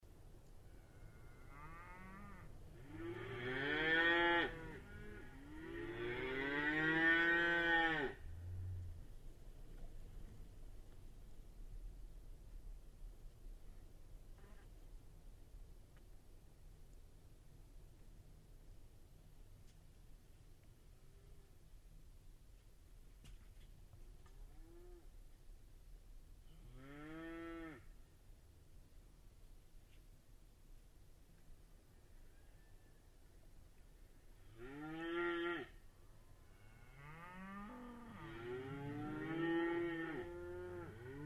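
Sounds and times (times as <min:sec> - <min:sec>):
cattle: 0:00.6 - 0:09.0, 0:14.3 - 0:14.8, 0:24.2 - 0:25.2, 0:34.4 - 0:41.2.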